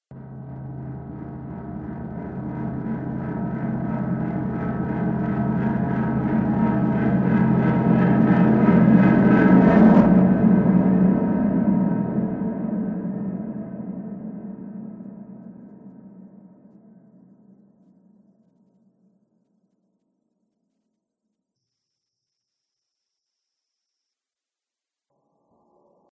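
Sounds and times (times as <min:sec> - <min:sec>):
resonant reverb whoosh: 0:00.1 - 0:14.8.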